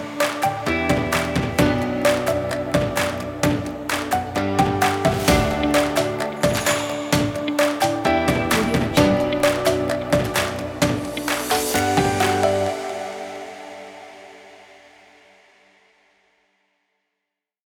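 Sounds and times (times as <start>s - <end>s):
upbeat corporate music: 0.0s - 13.6s.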